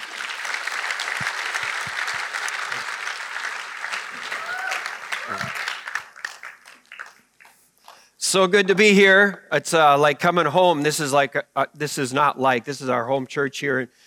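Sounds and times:
audience applause welcoming a guest speaker at a church service: 0.0s - 7.7s
speech: 8.3s - 14.0s.

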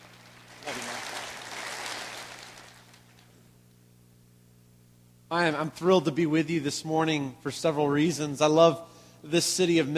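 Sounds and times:
church congregation at Memphis Sycamore View applauding a guest preacher: 0.0s - 3.3s
speech: 5.3s - 9.9s.

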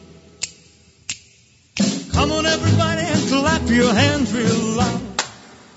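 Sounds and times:
finger snaps: 0.4s - 2.0s
speech: 2.2s - 5.1s.

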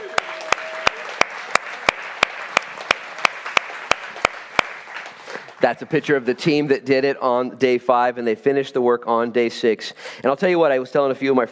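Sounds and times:
audience applause: 0.0s - 6.2s
speech: 5.6s - 11.5s.

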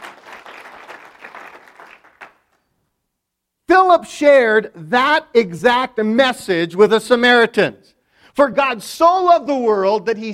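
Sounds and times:
audience applause: 0.0s - 2.5s
speech: 3.9s - 10.3s.

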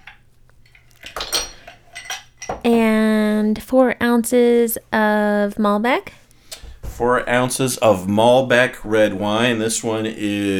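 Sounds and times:
ice cubes clattering into a glass: 0.0s - 2.6s
speech: 3.4s - 6.2s, 7.0s - 10.5s.

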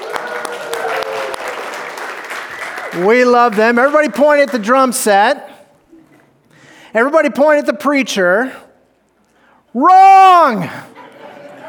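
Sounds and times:
audience cheering: 0.0s - 4.4s
speech: 2.9s - 5.5s, 6.9s - 8.6s, 9.8s - 10.9s
laughter: 10.7s - 11.6s.

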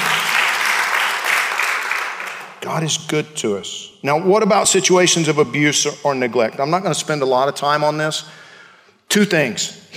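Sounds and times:
audience applause: 0.0s - 2.6s
speech: 2.6s - 8.4s, 9.1s - 9.9s.

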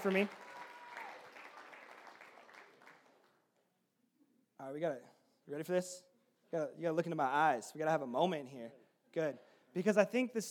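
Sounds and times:
speech: 0.0s - 0.4s, 4.6s - 10.4s
audience applause: 0.0s - 3.4s.

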